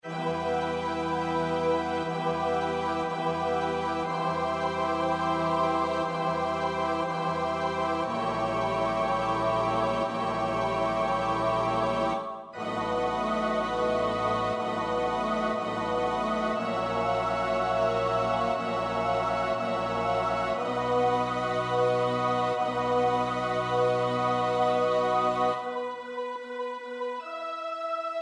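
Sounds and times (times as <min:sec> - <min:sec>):
SATB choir part practice: 0:00.0 - 0:28.1.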